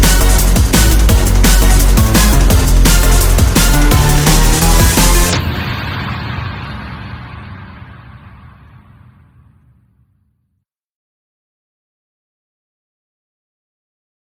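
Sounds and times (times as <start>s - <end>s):
instrumental remix: 0.0s - 5.8s.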